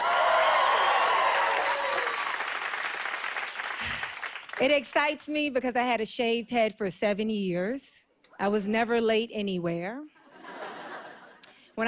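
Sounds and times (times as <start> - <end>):
audience applause at a stand-up comedy show: 0.0 - 4.6
speech: 4.6 - 10.1
laughter: 10.3 - 11.4.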